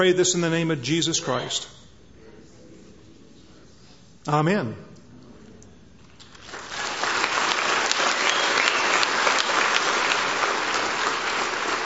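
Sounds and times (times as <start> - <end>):
speech: 0.0 - 1.8, 4.2 - 4.9
audience clapping: 6.1 - 11.8.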